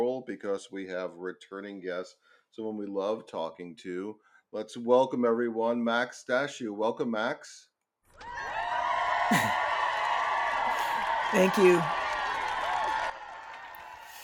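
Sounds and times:
speech: 0.2 - 8.6, 9.3 - 9.7, 11.3 - 12.0
crowd cheering and applauding: 8.2 - 14.2.

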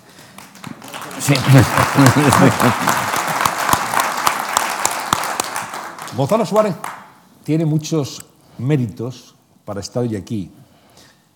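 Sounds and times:
audience applause: 0.0 - 7.1
laughter: 1.1 - 3.5
speech: 1.2 - 3.0, 6.2 - 10.6.

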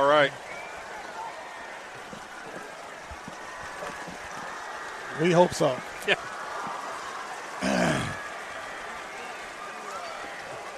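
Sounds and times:
speech: 0.0 - 0.5, 5.2 - 6.4
heavy rain falling: 3.5 - 9.1.

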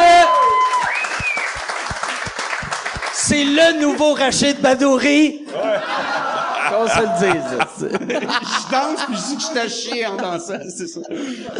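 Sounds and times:
applause: 0.0 - 3.9
speech: 3.3 - 11.5
laughter: 5.4 - 11.5.

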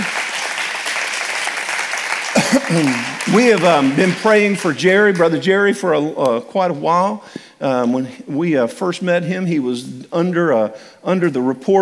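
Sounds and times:
church congregation applauding to welcome a guest: 0.0 - 5.5
speech: 2.6 - 11.7.

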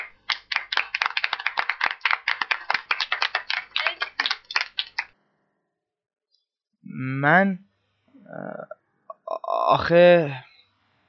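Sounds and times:
group applause for a speaker: 0.0 - 5.2
speech: 7.0 - 7.7, 9.7 - 10.4.

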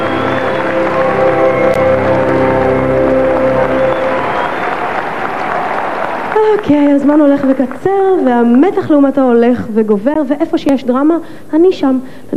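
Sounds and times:
sustained music: 0.0 - 6.0
audience applause: 0.0 - 8.0
speech: 6.6 - 12.3.

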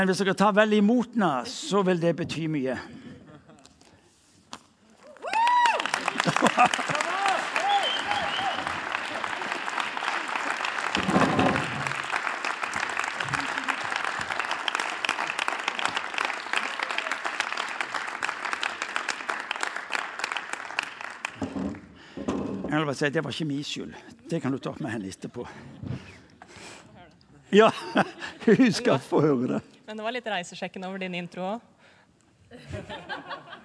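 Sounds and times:
speech: 0.0 - 3.0, 6.2 - 7.1, 22.8 - 26.1, 27.5 - 31.7
cheers: 5.0 - 11.0, 15.2 - 17.5
audience applause: 5.2 - 22.0
laughter: 6.0 - 7.5, 13.2 - 14.0, 27.6 - 29.4, 32.5 - 33.6.

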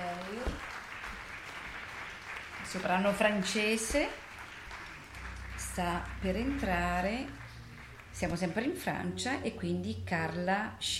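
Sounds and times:
audience applause: 0.0 - 8.2
speech: 2.7 - 4.2, 5.8 - 7.4, 8.2 - 10.9.

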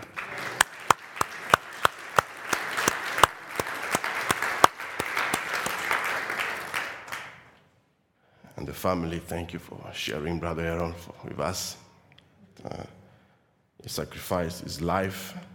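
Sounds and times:
church congregation clapping: 0.0 - 7.6
speech: 8.8 - 11.8, 12.6 - 13.0, 13.9 - 15.5.

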